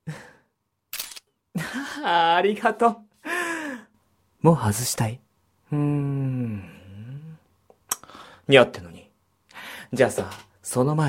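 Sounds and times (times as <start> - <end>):
camera shutter taking photos: 0.9 - 1.3
speech: 2.0 - 3.1, 4.4 - 6.8, 8.5 - 8.9, 9.9 - 11.0.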